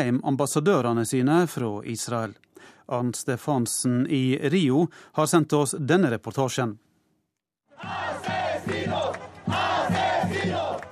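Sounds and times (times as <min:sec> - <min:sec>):
speech: 0:00.0 - 0:06.9, 0:07.8 - 0:09.7
crowd of thousands shouting protest chants in front of the Israeli embassy in Santiago: 0:07.7 - 0:10.8.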